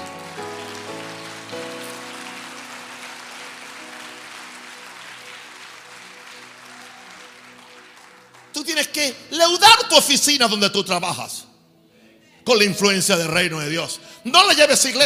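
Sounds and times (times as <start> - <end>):
audience applause: 0.0 - 9.0
speech: 8.6 - 11.5, 12.5 - 15.0.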